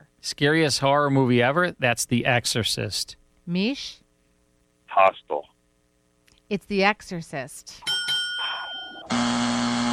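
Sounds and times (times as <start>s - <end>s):
speech: 0.2s - 4.0s, 4.9s - 5.5s, 6.5s - 7.9s
quiz buzzer: 8.8s - 9.9s.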